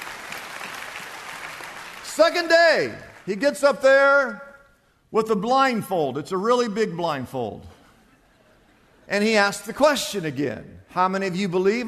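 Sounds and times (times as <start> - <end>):
audience applause: 0.0 - 3.3
speech: 2.2 - 4.4, 5.1 - 7.8, 9.1 - 11.8.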